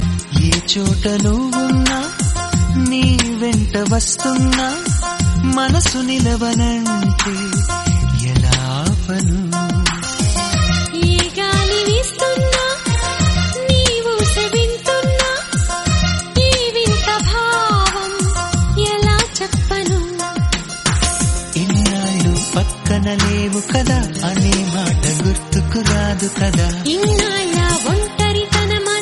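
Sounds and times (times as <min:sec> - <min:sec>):
melodic song: 0:00.0 - 0:29.0.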